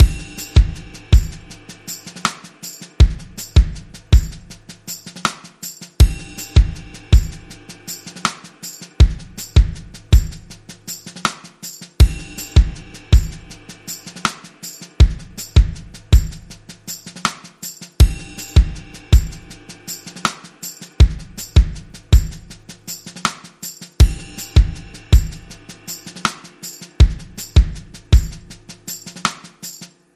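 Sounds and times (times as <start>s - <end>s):
drums: 0.0s - 30.1s.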